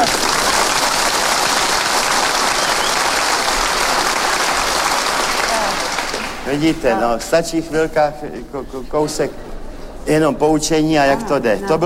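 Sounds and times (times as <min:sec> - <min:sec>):
frenetic applause from a large audience: 0:00.0 - 0:07.2
speech: 0:06.5 - 0:09.5, 0:10.1 - 0:11.8.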